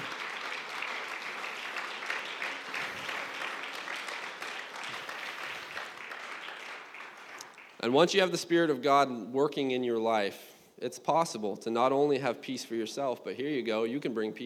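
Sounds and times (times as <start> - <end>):
audience applause: 0.0 - 7.8
speech: 7.8 - 14.4.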